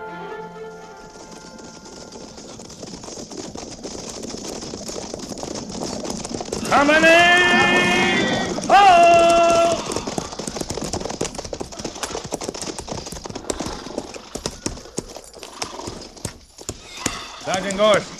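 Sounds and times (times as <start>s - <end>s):
horses' hooves clip-clopping while riding: 0.3s - 18.1s
horse whinnying: 6.6s - 10.8s, 11.6s - 12.6s, 13.2s - 18.1s
speech: 6.7s - 7.4s, 17.8s - 18.1s.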